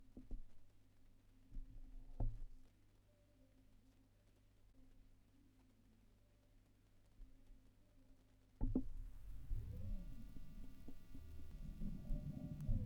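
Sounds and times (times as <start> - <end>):
vinyl record noise: 9.0 - 12.8.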